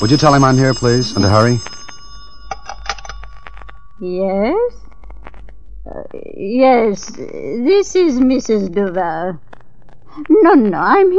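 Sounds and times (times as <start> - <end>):
speech: 0.0 - 1.7, 4.0 - 4.8, 5.9 - 9.5, 10.2 - 11.1
telephone ringing with a bright metallic bell: 0.0 - 4.6
faint steady hum: 0.0 - 11.1.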